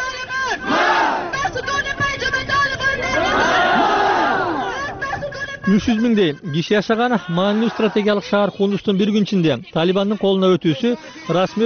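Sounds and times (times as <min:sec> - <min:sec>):
protesters at a demonstration in Kabul shouting: 0:00.3 - 0:01.6, 0:02.6 - 0:05.0, 0:07.1 - 0:08.2
protesters in Kabul chanting death to the Taliban: 0:00.6 - 0:01.4, 0:03.1 - 0:04.7
speech: 0:05.7 - 0:11.6.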